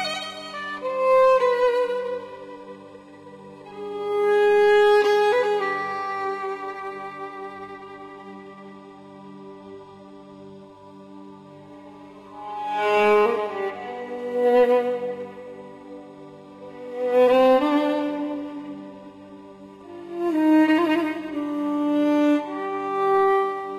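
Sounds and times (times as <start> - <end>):
mysterious violin: 0.0 - 23.7.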